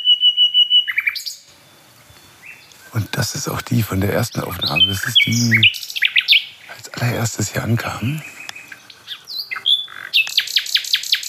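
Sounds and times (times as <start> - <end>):
nightingale singing: 0.0 - 11.2
speech: 3.2 - 5.8, 6.9 - 8.4.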